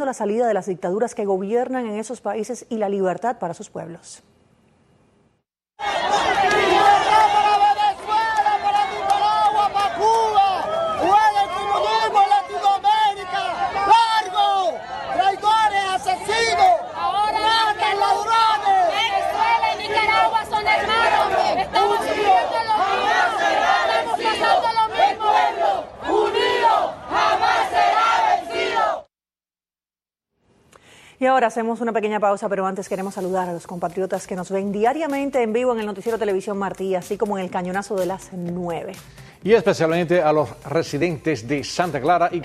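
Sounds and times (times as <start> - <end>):
speech: 0.0 - 4.3, 31.2 - 42.4
protest crowd chanting outside United Nations: 5.8 - 29.1.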